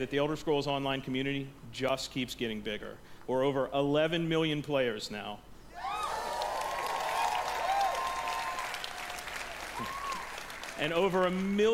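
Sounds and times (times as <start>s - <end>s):
speech: 0.0s - 6.0s, 10.8s - 11.7s
cheering and whoops: 5.7s - 10.6s
conference audience applause: 5.8s - 11.5s.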